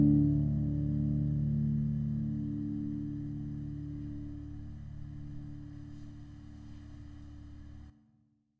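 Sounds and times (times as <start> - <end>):
hemitonic pentatonic scale example: 0.0 - 6.8.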